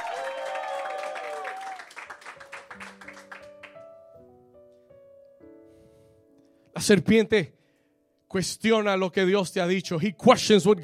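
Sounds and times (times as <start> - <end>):
audience applauding and cheering: 0.0 - 3.8
speech: 6.8 - 7.6, 8.3 - 10.8.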